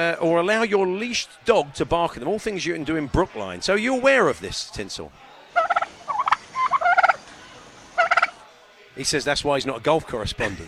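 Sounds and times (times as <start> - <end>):
speech: 0.0 - 5.3, 9.0 - 10.6
turkey gobbling sound effect: 5.6 - 7.2, 8.0 - 8.4.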